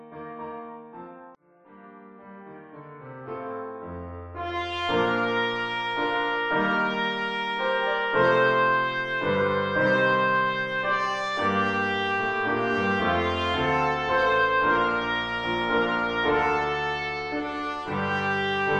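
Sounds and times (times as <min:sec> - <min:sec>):
piano: 0:00.0 - 0:18.7
trumpet: 0:04.3 - 0:18.7.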